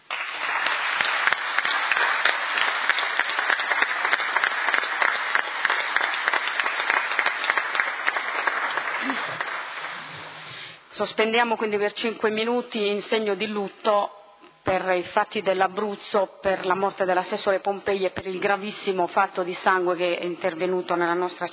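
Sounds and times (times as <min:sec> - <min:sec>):
long applause from a large group in a council chamber: 0:00.0 - 0:10.7
speech: 0:11.0 - 0:21.5.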